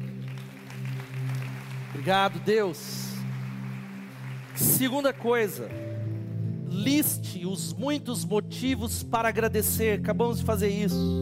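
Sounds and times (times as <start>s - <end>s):
audience clapping: 0.0s - 6.1s
sustained low keyboard or organ chord droning: 1.2s - 11.2s
speech: 2.0s - 3.1s, 4.6s - 5.9s, 6.7s - 11.2s.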